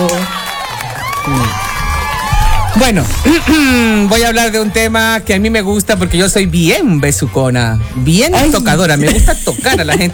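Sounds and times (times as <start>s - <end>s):
studio audience cheering and whooping: 0.0s - 3.2s
speech: 2.8s - 10.1s
laughter: 8.4s - 10.1s.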